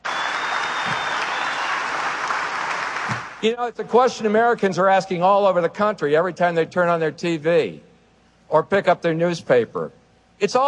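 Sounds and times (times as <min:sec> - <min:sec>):
studio audience applause: 0:00.0 - 0:03.4
speech: 0:03.4 - 0:07.9, 0:08.5 - 0:10.6.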